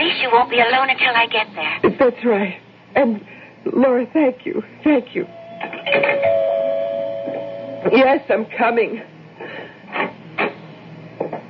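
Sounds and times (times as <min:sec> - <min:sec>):
speech: 0:00.3 - 0:06.4, 0:07.8 - 0:09.1
doorbell ringing: 0:05.3 - 0:07.9.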